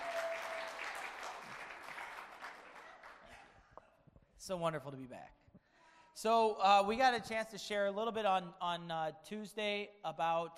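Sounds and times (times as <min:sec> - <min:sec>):
audience clapping: 0:00.0 - 0:03.7
speech: 0:04.5 - 0:05.4, 0:06.2 - 0:10.5.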